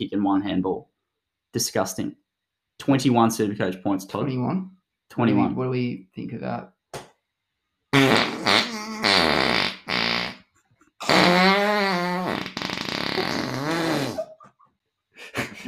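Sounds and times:
speech: 0:00.0 - 0:00.9, 0:01.5 - 0:02.2, 0:02.8 - 0:06.7
loud buzzy farts: 0:07.9 - 0:14.4.

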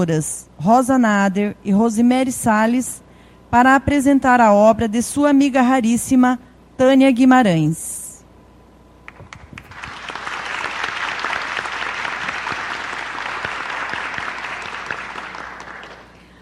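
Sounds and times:
speech: 0:00.0 - 0:08.0
audience applause: 0:09.1 - 0:16.2.

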